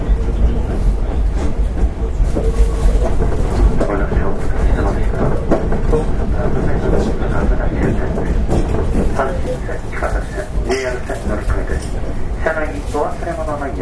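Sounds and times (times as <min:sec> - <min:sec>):
Hankyu 8000 series express train running on the Kobe Line: 0:00.0 - 0:13.8
faint voices: 0:00.0 - 0:13.8.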